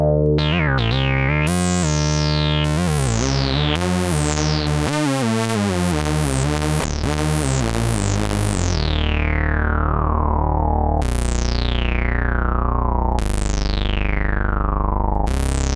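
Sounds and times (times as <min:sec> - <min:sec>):
fat Moog Micromoog analog synthesizer sound: 0:00.0 - 0:15.7.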